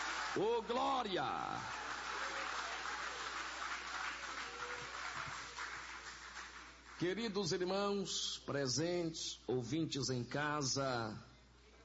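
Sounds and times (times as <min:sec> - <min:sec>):
audience applauding: 0:00.0 - 0:07.0
speech: 0:00.4 - 0:01.8, 0:07.0 - 0:11.3.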